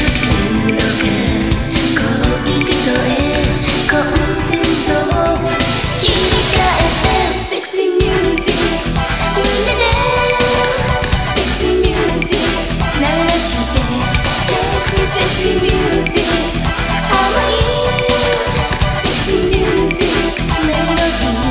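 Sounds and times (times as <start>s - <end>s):
sultry music: 0.0s - 21.4s.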